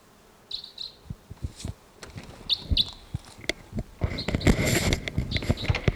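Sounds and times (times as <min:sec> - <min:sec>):
distant bird tooping call: 0:00.0 - 0:05.9
rustling: 0:00.0 - 0:05.9.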